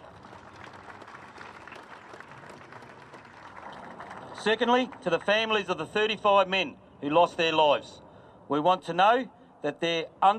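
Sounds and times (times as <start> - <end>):
audience applause: 0.0 - 4.4
speech: 4.4 - 10.3.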